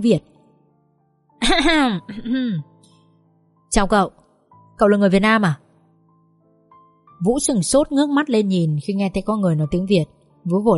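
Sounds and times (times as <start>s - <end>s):
speech: 0.0s - 0.4s, 1.4s - 2.7s, 3.7s - 4.2s, 4.8s - 5.6s, 7.2s - 10.7s
two-part throat clearing: 2.1s - 2.7s.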